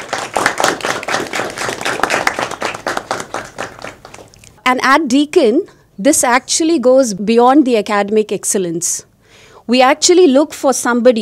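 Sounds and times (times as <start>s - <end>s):
crowd applauding: 0.0s - 4.4s
speech: 4.7s - 9.1s, 9.7s - 11.1s.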